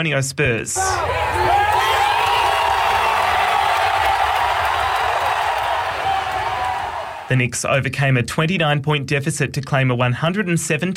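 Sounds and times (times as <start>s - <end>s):
speech: 0.0s - 2.0s, 7.3s - 10.9s
crowd cheering in Manhattan: 0.8s - 7.3s.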